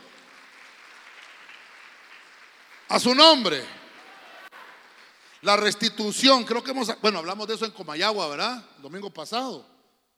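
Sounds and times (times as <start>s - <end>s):
audience applauding: 0.0s - 5.8s
speech: 2.9s - 3.8s, 5.4s - 9.7s.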